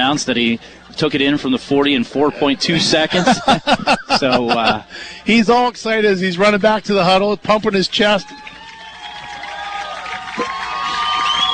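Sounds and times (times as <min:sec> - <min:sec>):
speech: 0:00.0 - 0:08.6
laughter: 0:00.4 - 0:05.5
stadium crowd cheering and applauding: 0:07.6 - 0:11.5
high whistles: 0:10.9 - 0:11.5.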